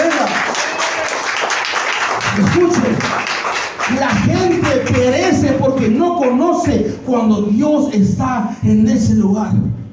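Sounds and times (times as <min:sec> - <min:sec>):
audience applauding loudly: 0:00.0 - 0:06.4
speech: 0:03.9 - 0:09.8.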